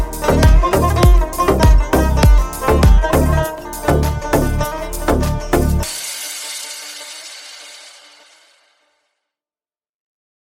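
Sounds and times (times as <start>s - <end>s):
happy background music: 0.0s - 8.0s.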